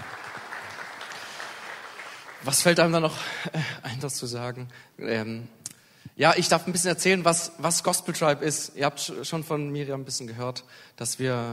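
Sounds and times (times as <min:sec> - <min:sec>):
audience applause: 0:00.0 - 0:03.3
speech: 0:02.4 - 0:05.6, 0:06.2 - 0:11.5.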